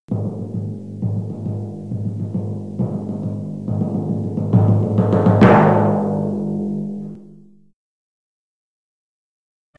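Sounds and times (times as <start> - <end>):
drum: 0.1 - 7.7.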